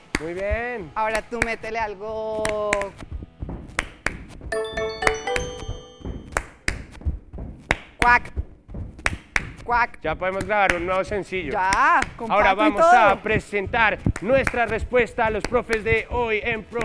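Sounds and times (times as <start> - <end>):
speech: 0.2 - 3.1, 8.0 - 8.4, 9.7 - 16.8
rhythmic percussion sounds: 4.6 - 6.7.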